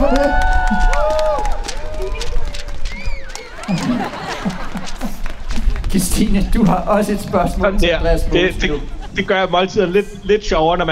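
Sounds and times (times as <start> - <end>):
whoops and excited shouting: 0.0 - 4.3
live crowd cheering and clapping: 0.0 - 6.6
laughter: 1.8 - 6.5, 8.2 - 10.0
speech: 6.1 - 10.9.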